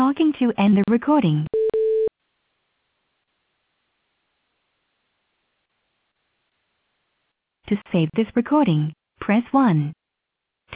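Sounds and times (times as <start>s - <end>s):
speech: 0.1s - 1.5s, 7.7s - 10.0s
voicemail recording tone beep: 1.5s - 2.1s.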